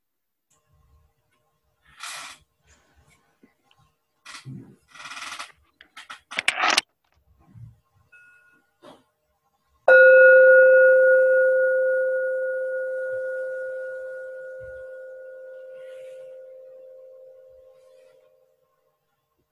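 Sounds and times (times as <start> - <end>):
bell ringing: 9.9 - 18.0.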